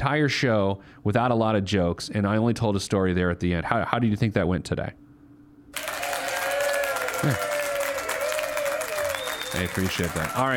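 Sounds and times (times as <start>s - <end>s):
speech: 0.0s - 5.0s, 7.2s - 7.5s, 9.5s - 10.5s
audience applause: 5.8s - 10.5s.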